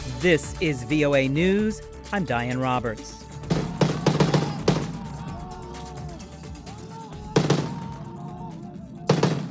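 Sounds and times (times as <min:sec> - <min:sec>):
speech: 0:00.2 - 0:03.2
gunfire shooting down a helicopter: 0:03.5 - 0:05.0, 0:07.4 - 0:08.0, 0:09.1 - 0:09.5
faint shouting voices: 0:03.5 - 0:09.2
crowd noise: 0:03.5 - 0:09.5.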